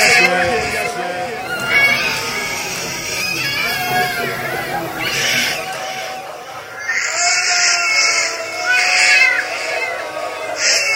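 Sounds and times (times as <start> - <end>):
laughter: 0.0 - 10.9
voices: 0.0 - 10.9
young baby crying: 0.0 - 10.9.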